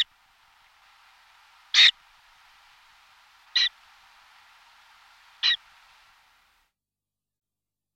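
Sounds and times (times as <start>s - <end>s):
boreal owl singing and calling: 1.6s - 2.1s, 3.4s - 3.9s, 5.3s - 5.8s.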